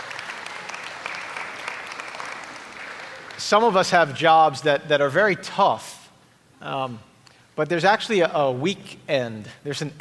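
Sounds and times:
audience applause: 0.0s - 3.6s
speech: 3.4s - 6.0s, 6.6s - 9.9s.

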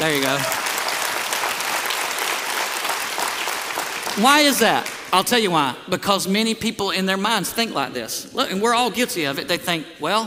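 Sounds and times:
speech: 0.0s - 0.6s, 4.2s - 10.2s
applause from many hands: 0.0s - 5.2s.

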